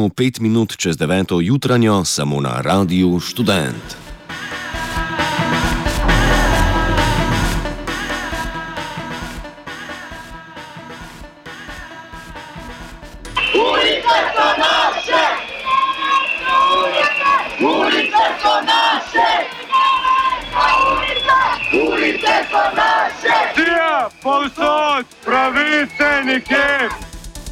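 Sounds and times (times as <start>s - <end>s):
speech: 0.0s - 4.0s, 24.2s - 27.0s
crowd of protesters chanting slogans at a protest in Ljubljana: 4.1s - 24.5s
noisy roar of protesters in Ljubljana: 4.2s - 9.4s, 13.3s - 27.1s.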